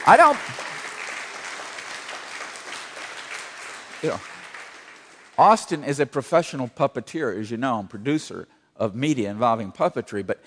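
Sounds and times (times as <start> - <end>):
speech: 0.0 - 0.7, 4.0 - 4.3, 5.4 - 10.4
audience applause: 0.0 - 5.8.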